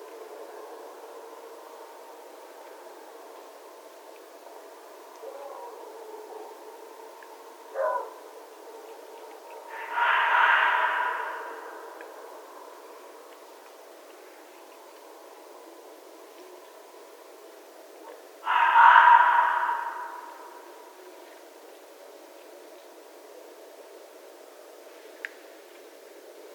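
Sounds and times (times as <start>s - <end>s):
red fox calling: 7.7s - 12.2s, 18.0s - 21.0s.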